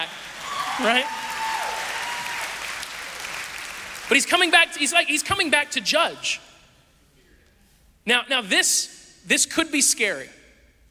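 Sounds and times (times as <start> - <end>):
a few claps from audience: 0.0 - 4.8
speech: 0.8 - 1.2, 4.1 - 6.5, 8.0 - 10.4.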